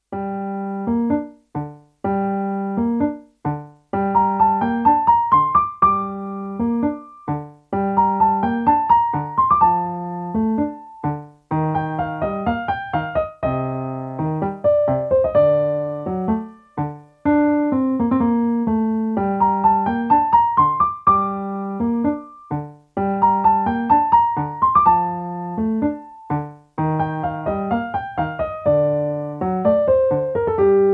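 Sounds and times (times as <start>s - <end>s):
excited tango music at final tempo: 2.2s - 30.9s.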